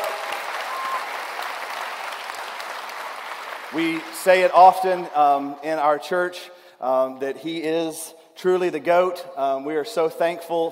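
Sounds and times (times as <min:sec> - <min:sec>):
audience applause: 0:00.0 - 0:05.1
speech: 0:03.7 - 0:10.7.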